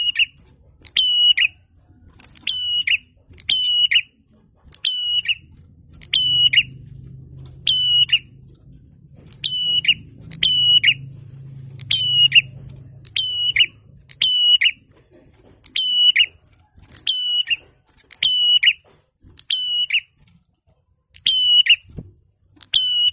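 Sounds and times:
prinia song of high flat whistles with burry endings: 0.0s - 1.6s, 2.4s - 4.2s, 4.8s - 6.9s, 7.6s - 8.4s, 9.3s - 14.9s, 15.6s - 18.8s, 19.4s - 20.2s, 21.2s - 22.0s, 22.6s - 23.1s.

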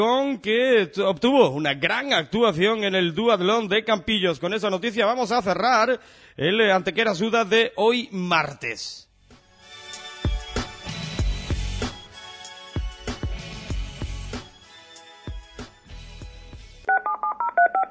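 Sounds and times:
speech: 0.0s - 9.1s
upbeat music with a heavy bass beat: 9.3s - 16.8s
telephone keypad dialing tones: 16.9s - 17.9s.

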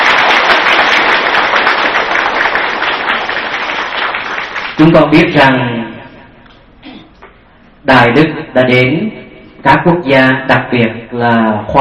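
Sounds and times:
Buddhist followers applauding in Denver, Colorado: 0.0s - 4.8s
speech: 4.8s - 5.7s, 7.9s - 11.7s.

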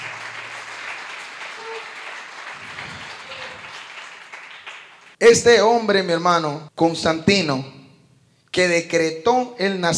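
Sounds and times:
audience clapping: 0.0s - 5.2s
speech: 5.2s - 7.8s, 8.5s - 9.9s.

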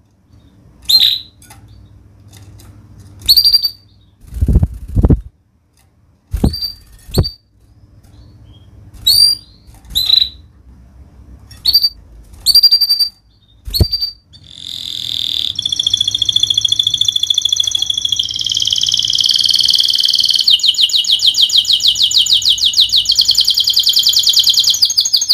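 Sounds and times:
canary singing a fast varied song: 0.3s - 2.1s, 3.2s - 4.8s, 6.4s - 10.5s, 11.6s - 25.3s.

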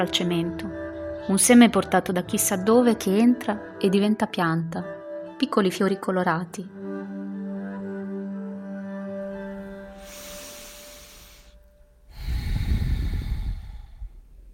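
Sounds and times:
speech: 0.0s - 0.7s, 1.3s - 6.8s
deep breathing in and out: 9.8s - 14.5s.

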